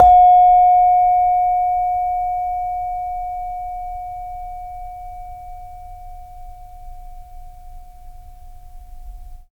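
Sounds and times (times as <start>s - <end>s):
saron note: 0.0s - 6.2s.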